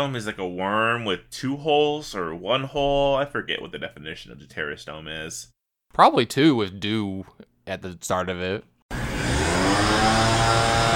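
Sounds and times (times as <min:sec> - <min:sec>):
speech: 0:00.0 - 0:08.7
leaf blower: 0:08.9 - 0:10.9.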